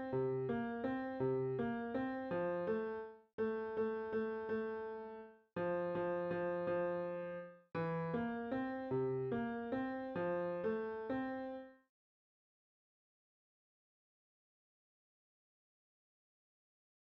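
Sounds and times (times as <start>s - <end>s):
music: 0.0s - 11.9s.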